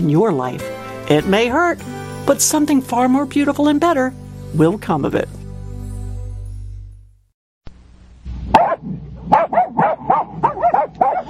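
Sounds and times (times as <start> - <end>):
speech: 0.0 - 5.4
dog barking: 8.5 - 11.2.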